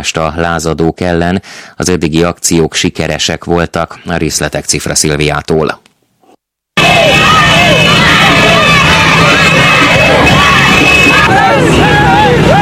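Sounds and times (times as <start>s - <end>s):
speech: 0.0s - 5.8s
celebrating crowd cheering: 6.8s - 12.6s.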